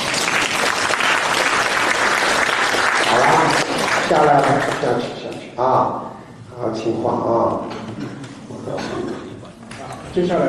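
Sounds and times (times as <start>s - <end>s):
audience applause: 0.0s - 5.0s
speech: 4.1s - 6.0s, 6.6s - 9.1s, 10.2s - 10.4s.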